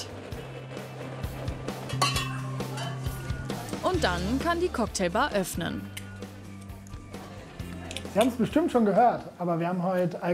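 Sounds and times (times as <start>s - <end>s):
glasses clinking while being carried: 1.9s - 3.5s
speech: 4.0s - 6.0s, 8.2s - 10.3s.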